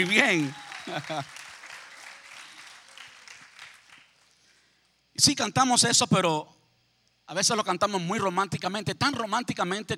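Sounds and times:
speech: 0.0s - 1.4s, 5.2s - 6.6s, 7.3s - 9.9s
laughter: 0.0s - 1.6s
audience applause: 0.0s - 4.3s.

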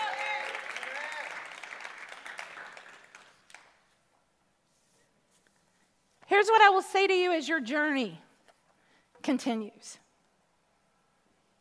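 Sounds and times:
audience hand clap of praise: 0.0s - 4.1s
speech: 6.3s - 8.2s, 9.2s - 10.0s.

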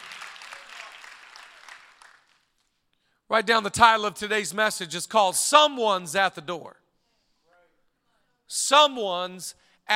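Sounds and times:
crowd applauding: 0.0s - 2.6s
speech: 3.3s - 6.8s, 8.5s - 9.9s.

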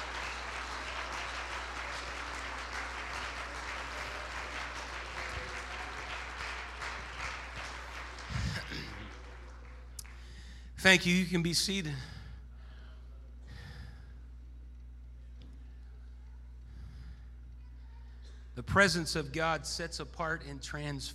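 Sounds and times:
people clapping hands: 0.0s - 10.6s
speech: 10.8s - 12.1s, 18.8s - 21.1s.

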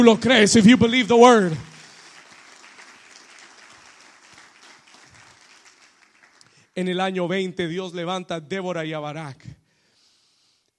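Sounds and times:
speech: 0.0s - 1.7s, 6.8s - 9.6s
audience applauding: 0.0s - 6.6s.

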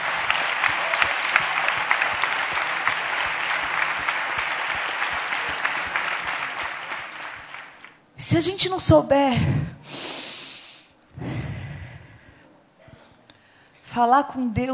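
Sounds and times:
crowd applause: 0.0s - 8.0s
speech: 8.3s - 9.8s, 14.0s - 14.7s.

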